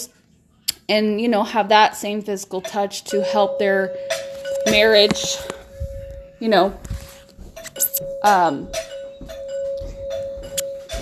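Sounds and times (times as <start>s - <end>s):
speech: 0.9s - 5.6s, 6.4s - 6.9s, 8.0s - 8.9s
doorbell ringing: 3.1s - 10.9s.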